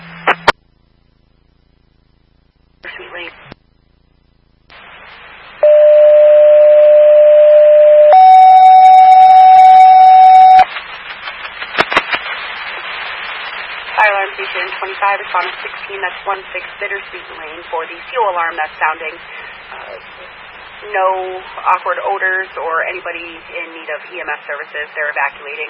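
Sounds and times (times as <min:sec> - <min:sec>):
fire dispatch alert tone: 0:05.6 - 0:10.7
speech: 0:15.3 - 0:19.4, 0:20.8 - 0:25.6.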